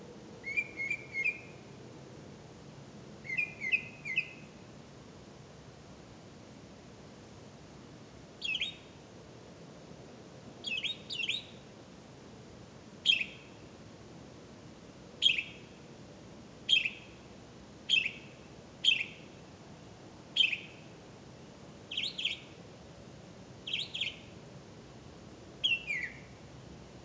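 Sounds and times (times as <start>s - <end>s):
bird chirps: 0.4s - 1.6s, 3.3s - 4.5s, 8.4s - 9.0s, 10.6s - 11.6s, 13.0s - 13.6s, 15.2s - 15.7s, 16.7s - 17.2s, 17.9s - 19.3s, 20.4s - 20.9s, 21.9s - 22.6s, 23.6s - 24.4s, 25.6s - 26.4s.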